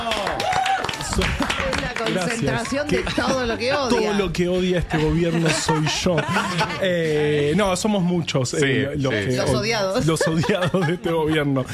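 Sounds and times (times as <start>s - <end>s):
applause: 0.0s - 3.2s
laughter: 1.2s - 7.6s, 10.0s - 11.7s
speech: 1.2s - 11.7s.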